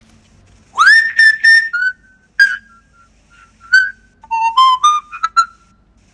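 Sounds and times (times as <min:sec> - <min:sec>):
person whistling an Italian song: 0:00.8 - 0:05.6.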